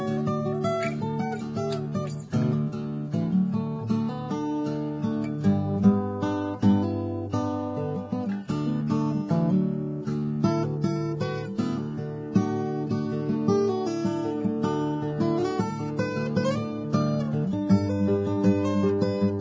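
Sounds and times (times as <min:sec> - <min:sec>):
acoustic guitar: 0:00.0 - 0:19.3.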